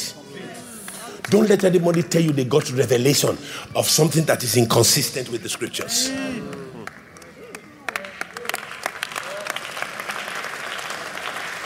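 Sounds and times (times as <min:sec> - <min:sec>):
speech: 0:01.3 - 0:06.6
audience applause: 0:05.8 - 0:11.6.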